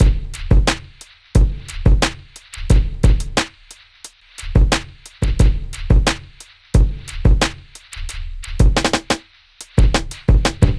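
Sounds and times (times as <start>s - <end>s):
hip hop drums: 0.0s - 10.7s.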